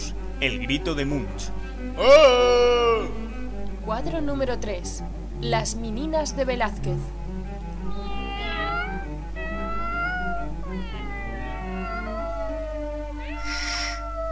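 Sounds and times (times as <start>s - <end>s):
speech: 0.4s - 3.2s, 3.9s - 7.2s
cats meowing: 7.8s - 14.3s.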